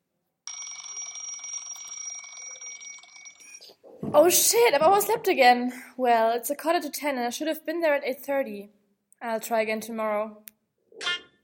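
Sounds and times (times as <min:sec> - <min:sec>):
alarm clock ringing: 0:00.5 - 0:03.7
speech: 0:03.8 - 0:11.1.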